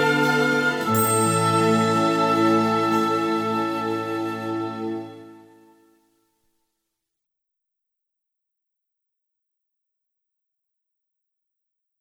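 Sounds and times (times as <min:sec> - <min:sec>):
instrumental meditation music: 0:00.0 - 0:06.4.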